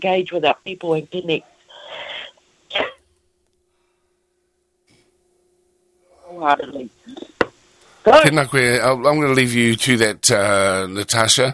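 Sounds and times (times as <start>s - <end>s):
speech: 0.0s - 1.6s, 6.4s - 7.3s, 8.0s - 11.5s
person coughing: 2.7s - 3.0s.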